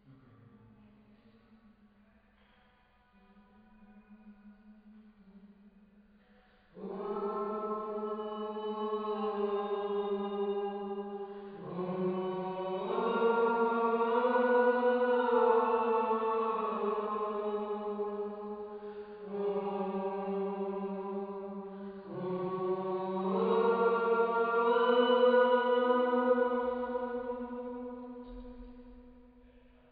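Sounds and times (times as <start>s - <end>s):
choir singing: 6.8s - 29.1s.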